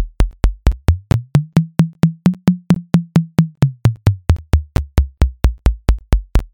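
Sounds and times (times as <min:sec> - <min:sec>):
coffee beat music: 0:00.2 - 0:06.4.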